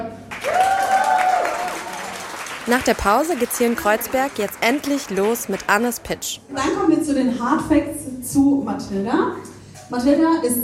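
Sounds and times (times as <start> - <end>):
audience applause: 0.3 - 6.3
speech: 2.7 - 10.6.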